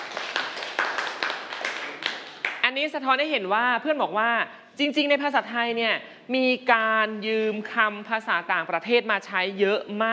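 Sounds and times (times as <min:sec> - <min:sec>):
classmates clapping for a student in a classroom: 0:00.0 - 0:02.8
speech: 0:02.8 - 0:10.1.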